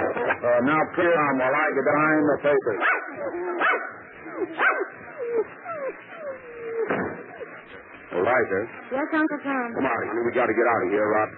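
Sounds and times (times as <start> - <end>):
speech: 0.5 - 3.4, 4.4 - 4.8, 8.2 - 11.3
dogs barking and yelping: 2.6 - 8.1.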